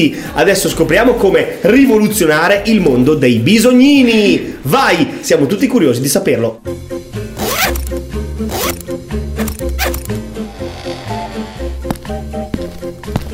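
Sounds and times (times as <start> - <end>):
speech: 0.0 - 6.9
music: 0.0 - 13.3
trouser zipper being pulled and stuck: 7.3 - 13.3.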